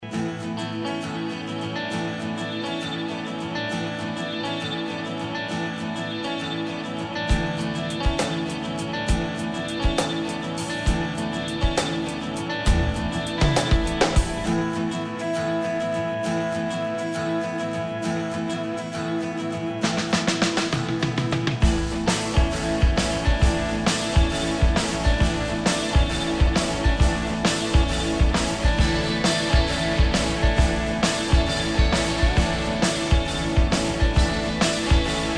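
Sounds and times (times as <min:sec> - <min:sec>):
login background music: 0:00.0 - 0:35.3.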